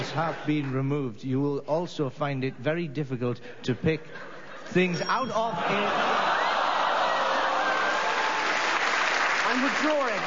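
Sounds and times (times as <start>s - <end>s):
speech: 0.1s - 6.4s, 9.5s - 10.2s
laughter: 3.6s - 8.0s
audience applause: 6.1s - 10.2s.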